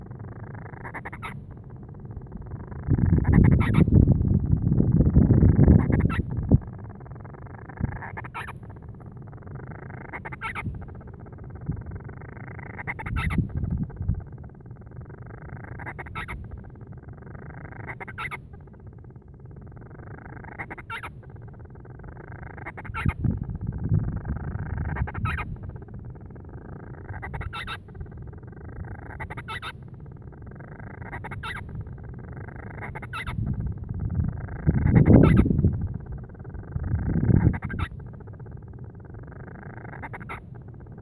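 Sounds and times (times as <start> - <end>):
band-rumped storm petrel churring calls: 0.0 - 41.0
low rumbling background: 0.0 - 41.0.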